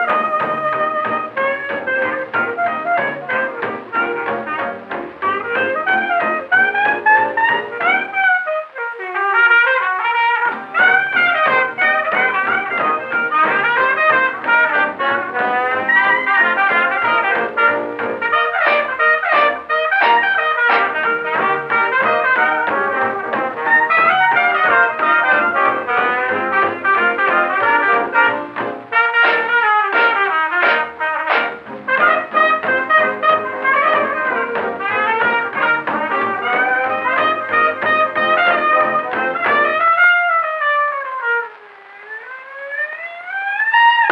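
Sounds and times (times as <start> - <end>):
music: 0.0 - 44.1.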